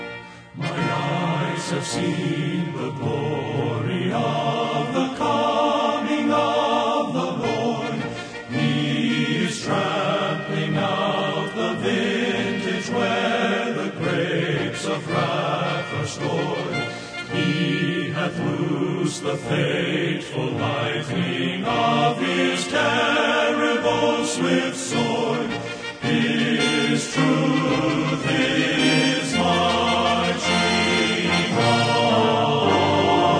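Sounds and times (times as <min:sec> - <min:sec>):
men's chorus singing: 0:00.6 - 0:33.3.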